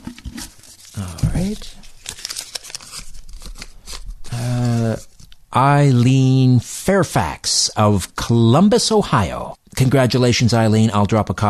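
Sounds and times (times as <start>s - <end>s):
paper prize draw entries rustling as they are stirred: 0.0s - 6.1s
speech: 1.0s - 1.9s, 5.6s - 11.4s.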